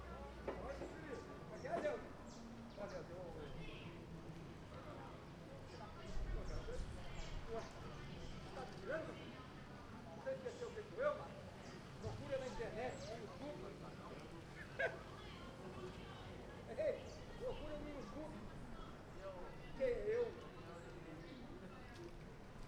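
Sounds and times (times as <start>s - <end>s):
morning street ambience in São Domingos: 0.0s - 22.6s.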